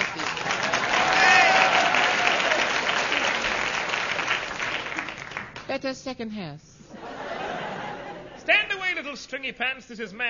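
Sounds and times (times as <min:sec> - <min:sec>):
audience applause: 0:00.0 - 0:05.6
speech: 0:05.8 - 0:06.7, 0:08.5 - 0:10.2
laughter: 0:06.9 - 0:08.8.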